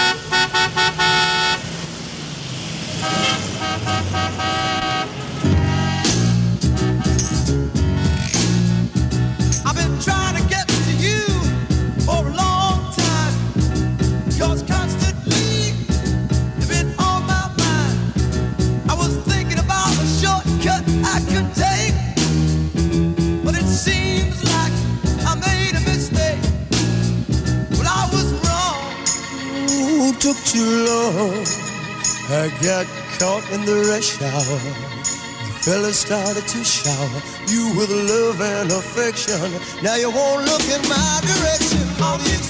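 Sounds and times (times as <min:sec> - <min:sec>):
blaring overlapping car horns: 0:00.0 - 0:02.0, 0:02.9 - 0:08.9
1960s soul song with driving beat and full band: 0:05.6 - 0:42.4
speech: 0:32.4 - 0:42.4.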